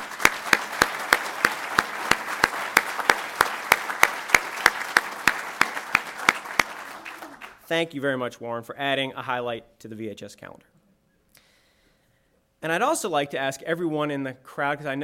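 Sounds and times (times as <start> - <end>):
crowd applause: 0.0 - 7.6
speech: 7.7 - 10.8, 12.6 - 15.0.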